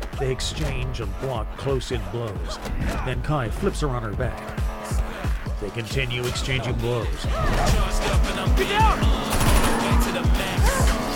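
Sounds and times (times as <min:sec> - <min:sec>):
speech: 0:00.2 - 0:05.0, 0:05.6 - 0:10.5
gunfire at close range: 0:09.2 - 0:10.0.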